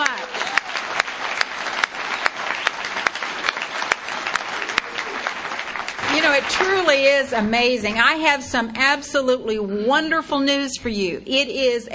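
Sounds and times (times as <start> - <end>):
audience applause: 0.0 - 8.0
speech: 6.4 - 11.9.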